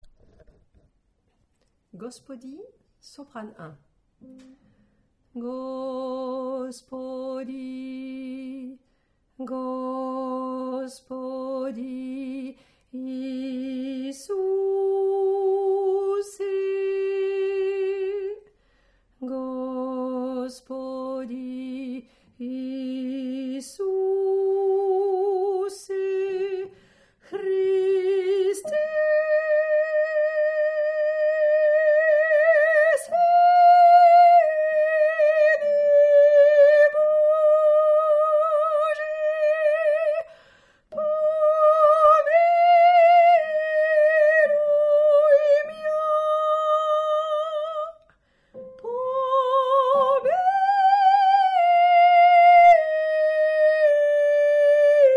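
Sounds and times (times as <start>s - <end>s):
soprano singing: 4.2s - 8.8s, 9.4s - 18.5s, 19.2s - 55.1s.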